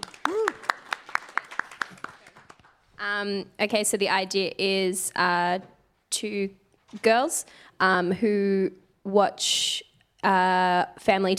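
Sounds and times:
hand claps: 0.0s - 2.8s
speech: 3.0s - 11.3s.

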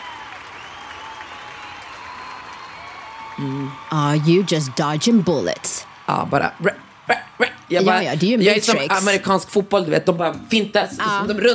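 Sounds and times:
applause: 0.0s - 9.2s
speech: 3.4s - 11.5s.

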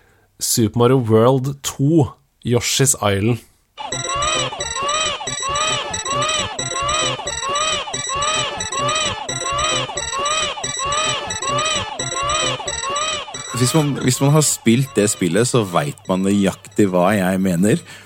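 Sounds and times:
speech: 0.4s - 4.0s, 13.6s - 18.0s
video game baby crying: 3.8s - 17.4s
laughter: 5.7s - 16.9s.

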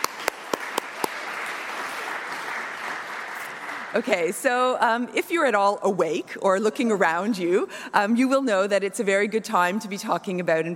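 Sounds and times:
audience applause: 0.0s - 4.4s
speech: 3.9s - 10.7s.

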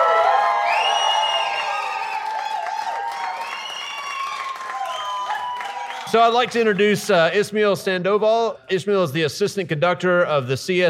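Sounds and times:
audience applause for a band: 0.0s - 7.3s
speech: 6.1s - 10.8s.

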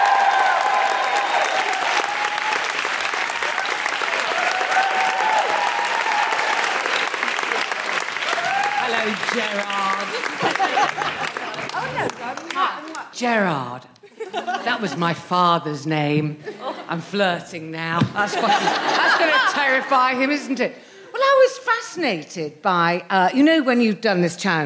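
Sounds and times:
audience applause: 0.0s - 13.0s
laughter: 8.9s - 12.4s, 14.0s - 15.2s, 16.4s - 17.0s, 18.1s - 20.2s
speech: 9.3s - 12.1s, 13.1s - 20.8s, 21.4s - 24.6s.

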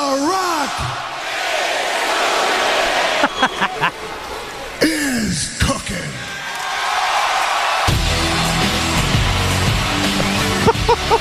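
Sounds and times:
crowd cheering: 0.2s - 4.9s, 6.2s - 11.1s
laughter: 3.0s - 4.2s, 10.4s - 11.1s
speech: 3.2s - 4.2s.

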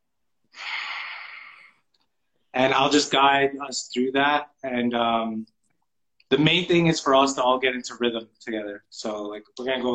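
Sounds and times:
single long nasal breath through one nostril during a guided full-moon breathwork circle: 0.5s - 1.9s
speech: 2.6s - 5.6s, 6.3s - 9.9s.

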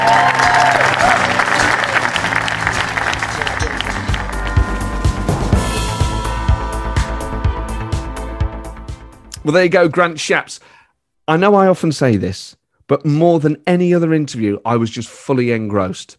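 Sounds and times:
theatre audience applause at the Duchess Theatre: 0.0s - 5.7s
music with a steady beat: 2.2s - 9.7s
speech: 9.5s - 10.7s, 11.3s - 16.1s.

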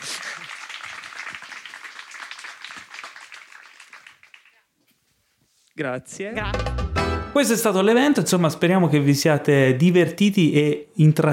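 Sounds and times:
audience applause: 0.0s - 4.6s
speech: 5.8s - 11.3s.

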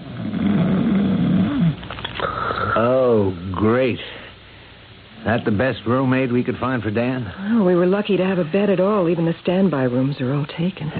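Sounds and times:
big heavily muscled middle-aged man snoring loudly and rhythmically: 0.0s - 2.8s
speech: 2.8s - 4.2s, 5.2s - 10.9s.

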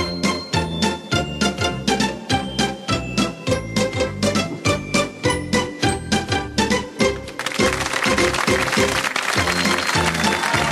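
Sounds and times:
rhythmic instrumental game show parody theme tune with punchy beat: 0.0s - 10.6s
crowd applause: 7.4s - 10.6s.

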